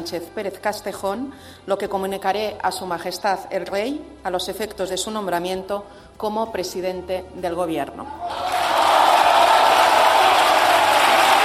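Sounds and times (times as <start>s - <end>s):
speech: 0.0s - 8.5s
long ovation from parliament deputies: 8.2s - 11.4s.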